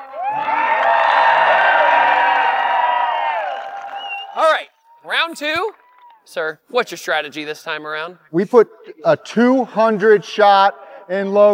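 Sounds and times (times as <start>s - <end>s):
crowd cheering: 0.0s - 6.3s
speech: 5.3s - 11.5s.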